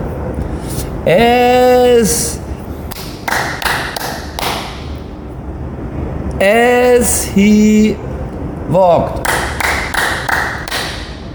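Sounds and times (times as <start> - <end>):
speech: 1.0 - 2.4, 6.4 - 9.4
hand claps: 2.9 - 4.8, 9.2 - 11.2.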